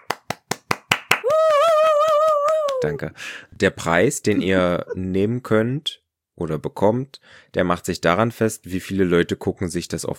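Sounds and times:
sharp hand claps: 0:00.0 - 0:03.0
speech: 0:02.8 - 0:10.1.

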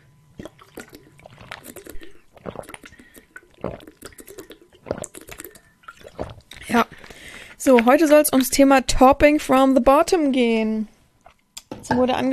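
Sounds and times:
person drinking a big gulp of water: 0:00.4 - 0:07.2
speech: 0:07.6 - 0:10.9, 0:11.9 - 0:12.3.

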